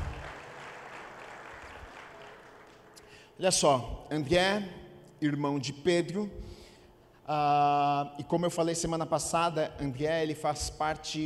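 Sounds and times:
audience applause: 0:00.0 - 0:03.1
speech: 0:03.4 - 0:06.5, 0:07.3 - 0:11.2.

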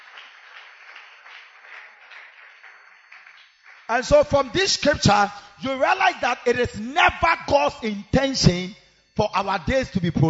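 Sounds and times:
audience clapping hands: 0:00.0 - 0:04.4
speech: 0:03.9 - 0:10.2.

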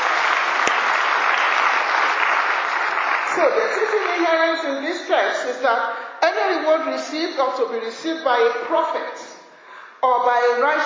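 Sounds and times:
audience clapping: 0:00.0 - 0:04.6
speech: 0:03.4 - 0:09.2, 0:10.0 - 0:10.8.

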